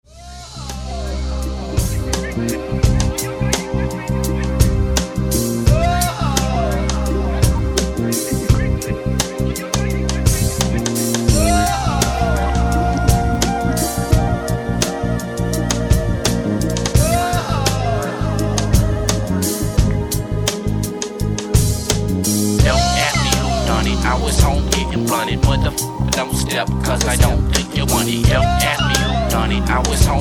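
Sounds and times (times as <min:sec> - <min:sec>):
hip hop music: 0:00.0 - 0:30.2.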